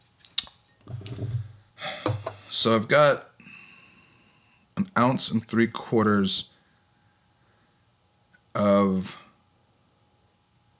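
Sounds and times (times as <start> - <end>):
pour spout pushed into a bottle: 0.8 - 2.2
speech: 2.6 - 3.3, 5.0 - 6.5, 8.6 - 9.2.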